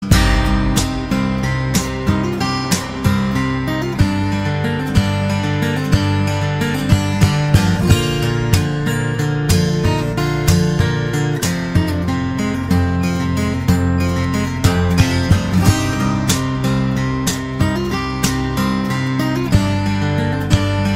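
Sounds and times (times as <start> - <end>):
guitar: 0.0 - 20.9.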